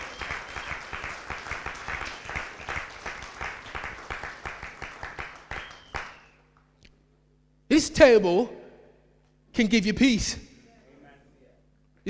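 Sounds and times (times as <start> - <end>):
audience applause: 0.0 - 6.2
speech: 7.8 - 8.6, 9.6 - 10.5.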